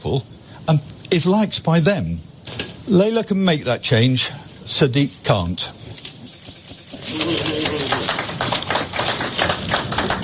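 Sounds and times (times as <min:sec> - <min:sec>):
speech: 0:00.0 - 0:05.8
stilted applause at a political rally: 0:07.0 - 0:10.2.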